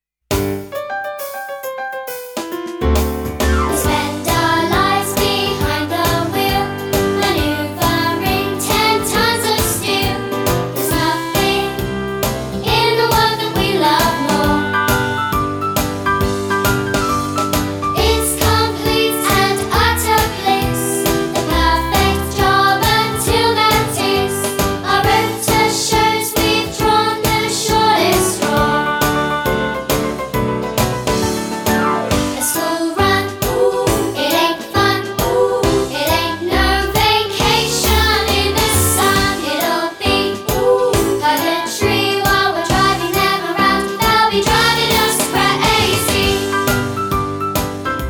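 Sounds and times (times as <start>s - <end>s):
blues music: 0.3s - 48.0s.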